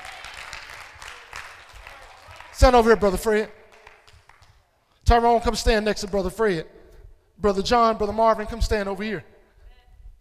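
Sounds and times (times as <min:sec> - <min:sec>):
audience clapping hands: 0:00.0 - 0:04.7
speech: 0:02.6 - 0:03.6, 0:05.1 - 0:06.8, 0:07.4 - 0:09.3.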